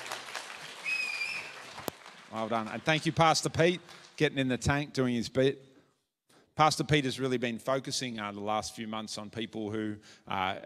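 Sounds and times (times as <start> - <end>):
audience applause: 0.0 - 4.2
speech: 2.3 - 5.7, 6.6 - 10.6.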